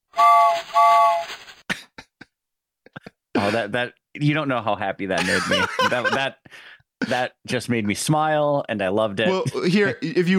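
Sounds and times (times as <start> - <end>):
steam train whistle: 0.1 - 1.4
speech: 3.5 - 10.3
laughter: 5.2 - 6.5.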